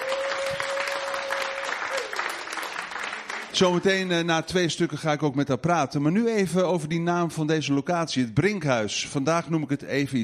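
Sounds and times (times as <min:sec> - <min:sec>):
audience clapping: 0:00.0 - 0:04.5
speech: 0:03.6 - 0:10.2.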